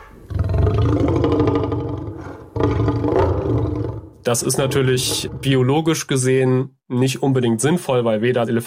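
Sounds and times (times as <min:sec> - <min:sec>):
film T-Rex roar combining elephant and lion: 0:00.3 - 0:05.7
speech: 0:04.3 - 0:08.6.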